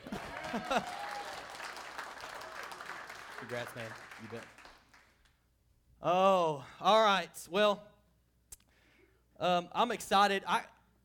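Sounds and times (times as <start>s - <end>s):
church audience at a night of worship applauding and cheering: 0.0s - 5.3s
speech: 0.5s - 1.0s, 3.4s - 4.6s, 6.0s - 7.9s, 9.4s - 10.7s.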